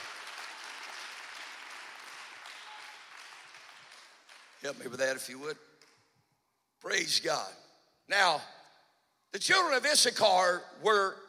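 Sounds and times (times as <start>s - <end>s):
crowd clapping hands: 0.0s - 6.0s
speech: 4.6s - 5.7s, 6.8s - 8.6s, 9.3s - 11.2s.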